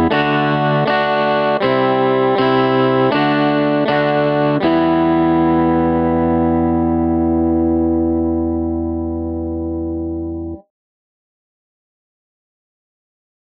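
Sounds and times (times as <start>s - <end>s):
guitar at 80 bpm: 0.0s - 10.7s.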